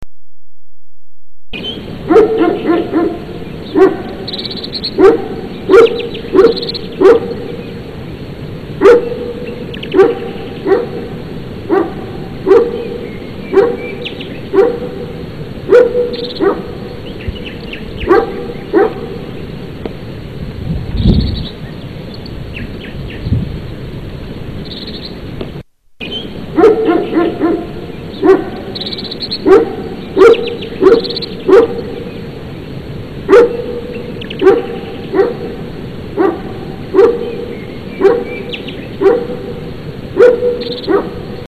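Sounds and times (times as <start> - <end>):
Belgian shepherd dog: 2.1 - 4.2, 5.0 - 7.4, 8.8 - 9.2, 9.9 - 11.0, 11.7 - 12.8, 13.5 - 13.9, 14.6 - 14.9, 15.7 - 16.7, 18.0 - 19.0, 26.6 - 28.6, 29.4 - 31.8, 33.3 - 33.8, 34.4 - 35.5, 36.2 - 37.3, 38.0 - 38.4, 39.0 - 39.4, 40.2 - 41.2.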